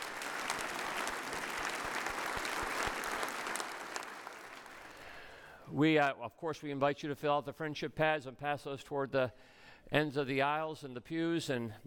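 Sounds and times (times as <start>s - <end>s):
audience round of applause: 0.0s - 5.3s
speech: 5.8s - 11.8s.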